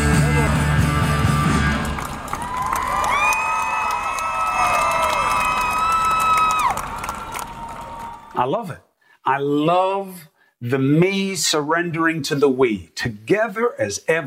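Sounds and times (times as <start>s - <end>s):
crowd cheering for frontline workers: 0.2s - 8.5s
speech: 8.4s - 14.2s.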